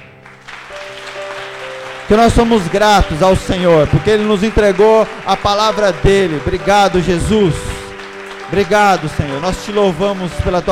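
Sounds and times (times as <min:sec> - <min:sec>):
audience applauding: 0:00.0 - 0:10.7
speech: 0:02.1 - 0:07.7, 0:08.5 - 0:10.7.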